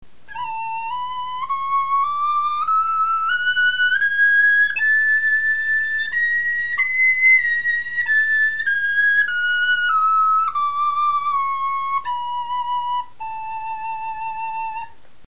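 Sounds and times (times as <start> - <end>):
bone flutes playing a scale: 0.1 - 15.0.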